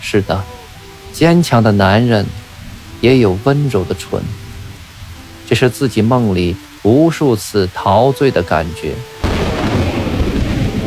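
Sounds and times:
speech: 0.0s - 0.6s, 1.2s - 2.4s, 3.0s - 4.4s, 5.5s - 9.1s
thunder: 9.2s - 10.8s.

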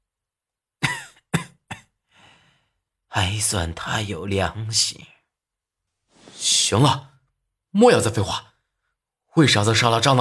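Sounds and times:
man coughing: 0.8s - 2.0s
speech: 3.2s - 5.2s, 6.4s - 7.1s, 7.7s - 8.5s, 9.4s - 10.1s.

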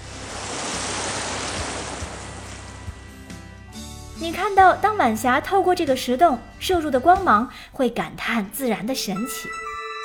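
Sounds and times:
ocean waves surging through rock cave: 0.0s - 3.3s
speech: 4.2s - 9.6s.

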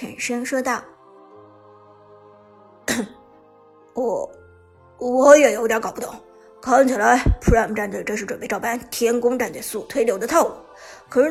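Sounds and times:
speech: 0.0s - 1.0s, 2.9s - 3.2s, 4.0s - 4.4s, 5.0s - 11.2s
man coughing: 2.9s - 3.2s.

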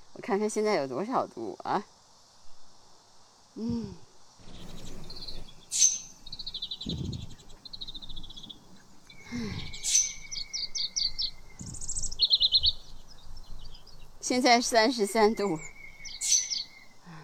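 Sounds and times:
insect-like buzz: 0.1s - 17.2s
speech: 0.2s - 2.0s, 3.6s - 4.0s, 14.3s - 15.7s
low thumps: 3.6s - 14.3s
birds singing outdoors in chirps and trills: 4.4s - 17.2s.

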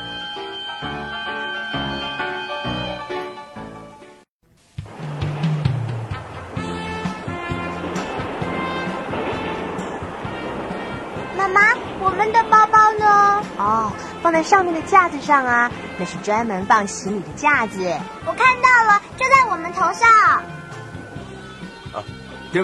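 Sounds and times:
train starting to depart: 0.0s - 4.0s, 4.8s - 22.6s
speech: 13.9s - 20.5s, 22.0s - 22.6s.

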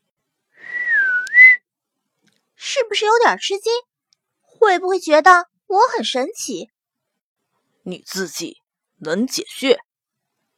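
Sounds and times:
whistle blown with the mouth: 0.6s - 1.6s
speech: 2.9s - 3.9s, 4.6s - 6.8s, 7.9s - 9.9s.

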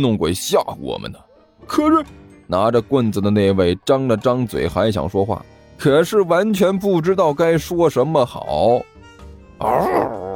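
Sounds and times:
speech: 0.0s - 8.9s, 9.6s - 10.3s
wolf howling at night: 9.6s - 10.3s.

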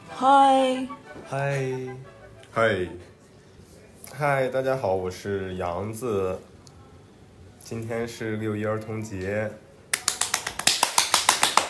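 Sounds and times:
speech: 0.2s - 3.1s, 4.1s - 6.5s, 7.6s - 9.6s
two people clapping hands: 9.9s - 11.6s.

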